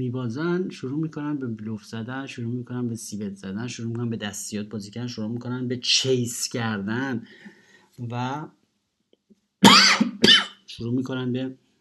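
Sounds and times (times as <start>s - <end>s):
speech: 0.0s - 8.6s, 10.8s - 11.6s
cough into microphone: 9.6s - 10.7s.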